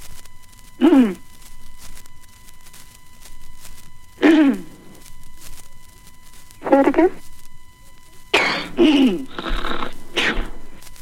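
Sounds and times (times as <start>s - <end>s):
person sneezing: 0.8s - 1.2s, 4.2s - 4.8s, 8.3s - 10.7s
speech: 0.8s - 1.2s
wheezy exhales and throat sounds: 8.4s - 10.8s.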